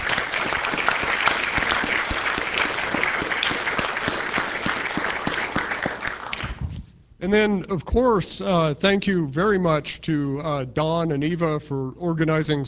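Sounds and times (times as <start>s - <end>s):
audience applause: 0.0s - 6.6s
speech: 7.2s - 12.6s.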